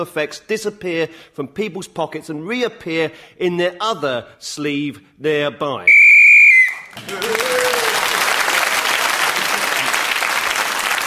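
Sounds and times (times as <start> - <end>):
speech: 0.0 - 6.0, 6.9 - 7.7
shrill whistle blast signalling sixty seconds are up: 5.9 - 6.9
loud applause: 6.6 - 11.0.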